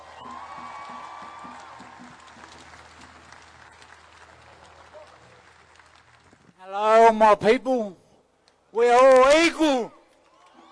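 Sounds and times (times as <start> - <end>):
audience applause for speaker: 0.0 - 6.6
speech: 6.7 - 8.0, 8.7 - 10.0.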